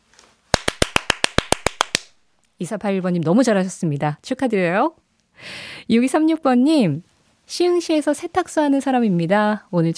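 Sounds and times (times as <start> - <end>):
host clapping hands: 0.5 - 2.2
speech: 2.6 - 9.9.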